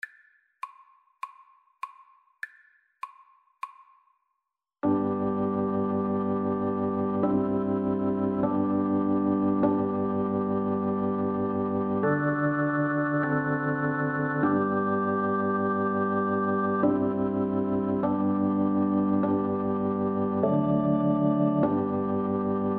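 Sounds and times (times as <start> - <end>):
recorder: 4.9 - 22.7.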